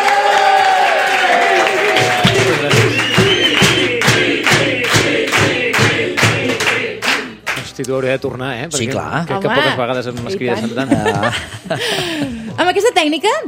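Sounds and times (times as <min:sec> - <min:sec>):
studio audience cheering: 0:00.0 - 0:05.0
studio audience loud applause: 0:00.0 - 0:07.7
speech: 0:07.8 - 0:13.4
laughter: 0:10.5 - 0:12.6.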